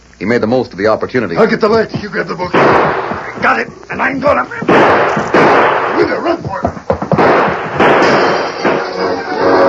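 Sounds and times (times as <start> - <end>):
speech: 0.2 - 6.8
gunshots in a radio drama: 2.5 - 3.7, 4.6 - 6.4, 7.0 - 9.6.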